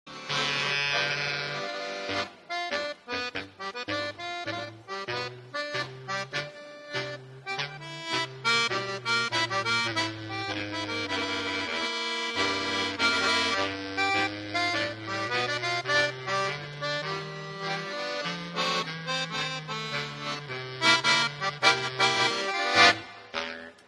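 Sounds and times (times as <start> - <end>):
blues music: 0.1 - 23.8.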